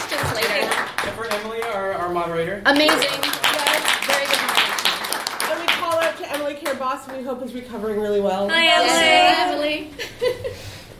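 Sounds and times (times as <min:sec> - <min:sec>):
audience round of applause: 0:00.0 - 0:01.8, 0:02.7 - 0:07.2
speech: 0:02.1 - 0:03.3, 0:06.5 - 0:10.7.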